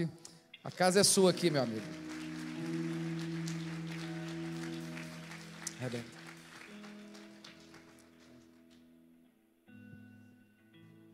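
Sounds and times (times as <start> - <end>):
speech: 0.0 - 2.0, 5.8 - 6.2
audience applauding: 0.7 - 8.8.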